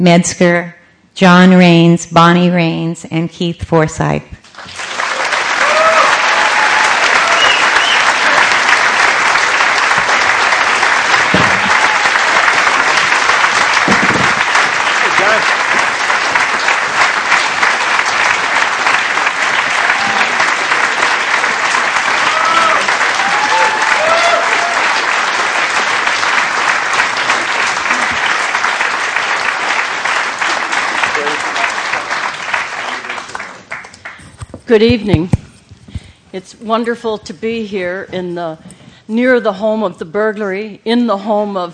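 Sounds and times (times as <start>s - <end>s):
speech: 0.0s - 4.8s, 34.7s - 35.4s, 36.4s - 41.7s
audience applause at an evening event welcoming four guests: 4.5s - 34.2s.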